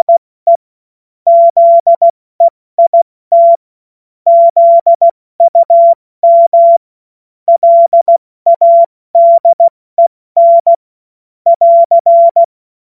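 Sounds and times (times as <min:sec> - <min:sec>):
CW Morse code beeps: 0:00.0 - 0:00.6, 0:01.3 - 0:03.6, 0:04.3 - 0:06.8, 0:07.5 - 0:09.7, 0:10.4 - 0:10.8, 0:11.5 - 0:12.5.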